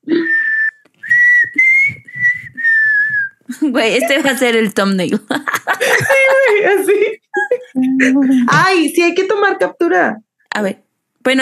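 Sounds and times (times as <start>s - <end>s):
person attempting a whistle: 0.0s - 3.4s
speech: 3.7s - 7.2s, 7.8s - 11.4s
laughter: 5.3s - 8.6s.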